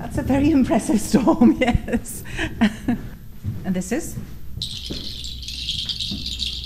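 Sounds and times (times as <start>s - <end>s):
speech: 0.2s - 3.0s, 3.7s - 4.3s
birds singing: 4.6s - 6.6s.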